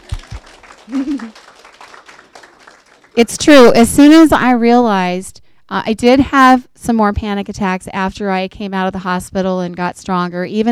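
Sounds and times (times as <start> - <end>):
audience clapping: 0.0 - 4.2
speech: 0.9 - 1.5, 3.2 - 10.6.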